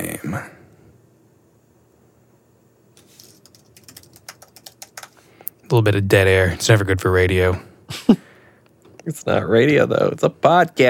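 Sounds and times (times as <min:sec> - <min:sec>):
faint steady hum: 0:00.0 - 0:10.8
typing on a computer keyboard: 0:03.2 - 0:05.2
speech: 0:05.7 - 0:08.2, 0:09.0 - 0:10.8.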